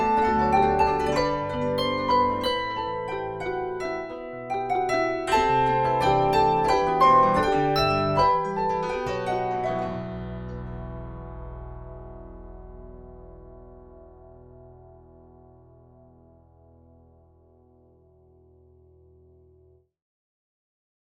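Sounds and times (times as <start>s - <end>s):
plucked grand harp: 0.0s - 13.8s.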